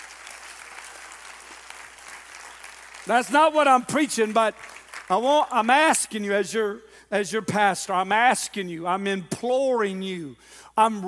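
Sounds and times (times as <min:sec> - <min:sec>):
audience clapping hands: 0:00.0 - 0:05.6
speech: 0:03.0 - 0:11.0.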